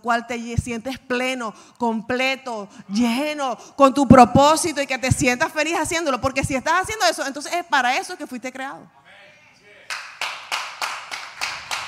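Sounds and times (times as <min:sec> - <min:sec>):
speech: 0:00.0 - 0:09.2
person clapping hands: 0:09.9 - 0:11.8.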